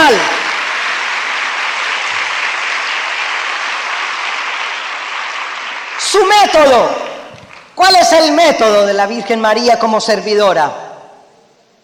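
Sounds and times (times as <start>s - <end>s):
audience applause: 0.0s - 7.8s
speech: 6.4s - 7.1s, 7.8s - 10.8s.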